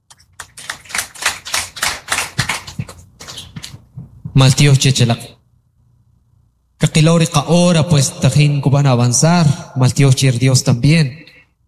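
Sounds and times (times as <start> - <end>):
audience applauding: 0.4 - 3.8
speech: 4.4 - 5.4, 7.0 - 11.3.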